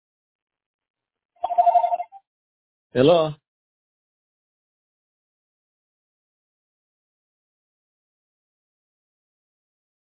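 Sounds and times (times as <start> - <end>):
telephone ringing with an incoming call: 1.4 - 2.2
speech: 2.9 - 3.4.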